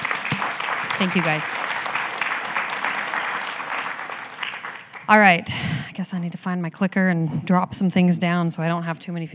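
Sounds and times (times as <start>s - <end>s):
audience applause: 0.0s - 5.2s
speech: 1.0s - 1.6s, 5.1s - 9.3s.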